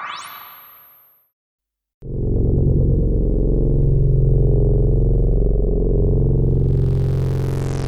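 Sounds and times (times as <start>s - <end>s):
modular synthesizer: 2.1s - 7.8s.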